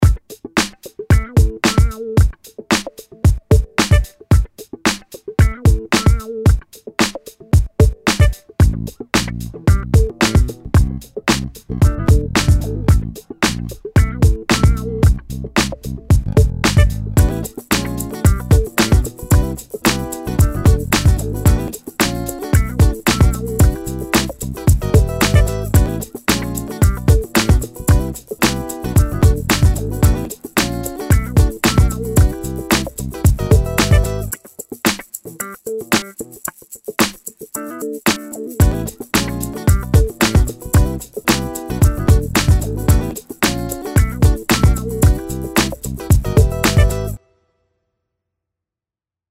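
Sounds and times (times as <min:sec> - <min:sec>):
funny funky music: 0:00.0 - 0:47.3.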